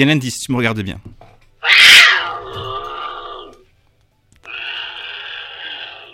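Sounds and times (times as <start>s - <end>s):
speech: 0.0s - 1.8s
lynx calls: 1.6s - 3.6s, 4.5s - 6.1s.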